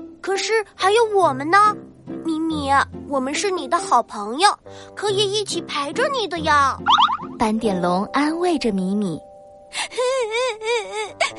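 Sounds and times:
speech: 0:00.2 - 0:11.3
child crying: 0:09.8 - 0:11.3.

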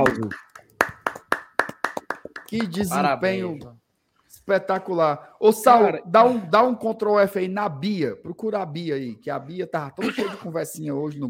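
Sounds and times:
audience clapping: 0:00.0 - 0:03.7
speech: 0:00.1 - 0:00.5, 0:02.5 - 0:03.8, 0:04.4 - 0:11.2.

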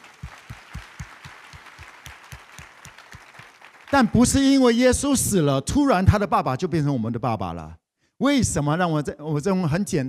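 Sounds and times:
audience clapping in a steady rhythm: 0:00.0 - 0:04.5
speech: 0:03.9 - 0:10.0.

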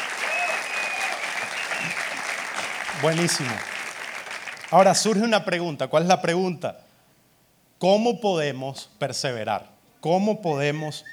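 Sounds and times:
faint whistles and cheers: 0:00.0 - 0:04.8
crowd applause: 0:00.0 - 0:05.1
speech: 0:03.0 - 0:03.7, 0:04.7 - 0:06.8, 0:07.8 - 0:11.1.

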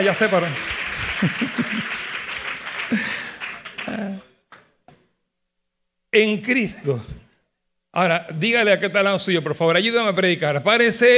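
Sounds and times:
speech: 0:00.0 - 0:02.1, 0:02.9 - 0:03.2, 0:03.9 - 0:04.3, 0:06.1 - 0:07.2, 0:07.9 - 0:11.1
loud audience applause: 0:00.0 - 0:04.3
laughter: 0:00.7 - 0:04.2.

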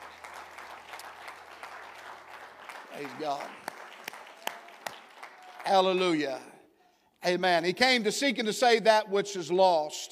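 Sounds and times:
audience clapping hands: 0:00.0 - 0:06.4
speech: 0:03.0 - 0:03.7, 0:05.7 - 0:06.5, 0:07.2 - 0:10.0.

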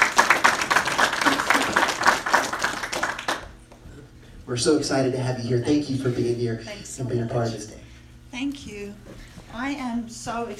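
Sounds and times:
audience applause at a church gathering: 0:00.0 - 0:03.6
speech: 0:04.5 - 0:07.8, 0:08.4 - 0:10.5.

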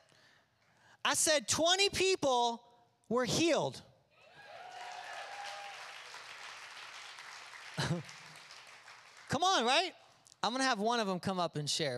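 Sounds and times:
speech: 0:01.0 - 0:03.9, 0:07.9 - 0:08.2, 0:09.4 - 0:11.9
crowd applauding: 0:04.4 - 0:09.6.

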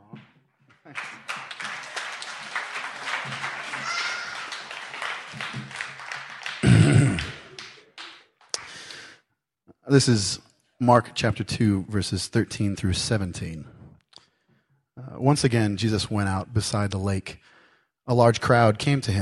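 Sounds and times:
church congregation clapping for a reader: 0:00.7 - 0:09.0
speech: 0:09.9 - 0:13.8, 0:15.2 - 0:17.5, 0:18.1 - 0:19.1.

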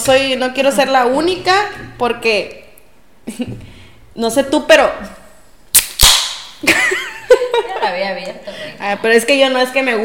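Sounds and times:
speech: 0:00.0 - 0:02.6, 0:03.3 - 0:05.2, 0:07.9 - 0:10.0
diet soda can being opened: 0:05.7 - 0:06.5
laughter: 0:06.7 - 0:08.8.

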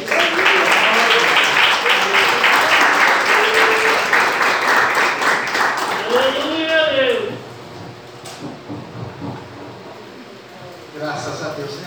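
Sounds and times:
audience clapping: 0:00.0 - 0:07.4.

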